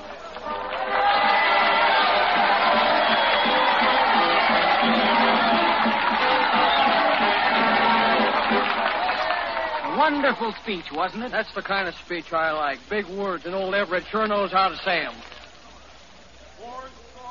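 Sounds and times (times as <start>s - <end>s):
crowd cheering: 0.0s - 11.9s
speech: 10.1s - 15.3s.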